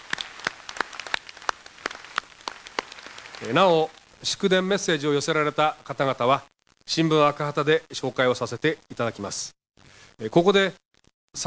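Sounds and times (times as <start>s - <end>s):
audience applause: 0.0s - 3.9s
speech: 3.4s - 9.6s, 10.2s - 10.8s.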